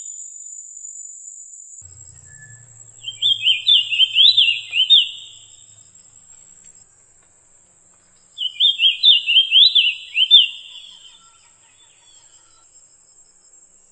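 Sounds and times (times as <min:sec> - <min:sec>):
low rumble: 0:01.8 - 0:08.4
high whine: 0:01.8 - 0:10.8
white-eye song: 0:01.8 - 0:12.8.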